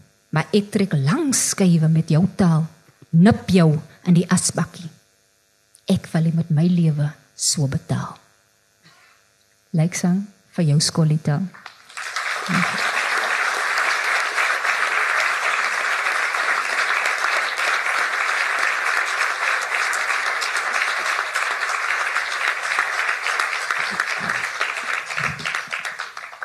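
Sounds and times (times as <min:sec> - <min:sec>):
speech: 0:00.3 - 0:05.0, 0:05.9 - 0:08.2, 0:09.7 - 0:11.7, 0:12.5 - 0:12.9
audience applause: 0:11.6 - 0:26.4.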